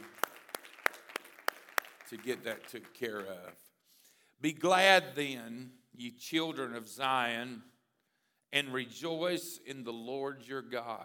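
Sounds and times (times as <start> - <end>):
audience applause: 0.0 - 3.6
speech: 2.1 - 3.7, 4.4 - 7.7, 8.5 - 11.0.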